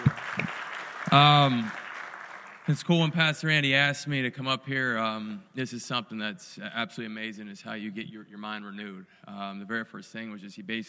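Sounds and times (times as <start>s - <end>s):
crowd applause: 0.0s - 3.1s
speech: 1.1s - 1.8s, 2.7s - 10.8s.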